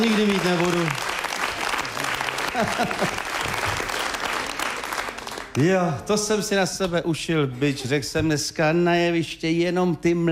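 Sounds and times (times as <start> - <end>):
speech: 0.0 - 1.1, 2.6 - 3.9, 5.6 - 10.3
audience applause: 0.0 - 5.9
laughter: 1.6 - 3.8, 7.3 - 8.4.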